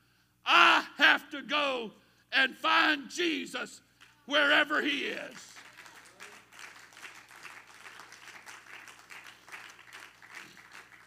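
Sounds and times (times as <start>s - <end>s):
speech: 1.4s - 5.7s
audience applause: 5.4s - 11.0s.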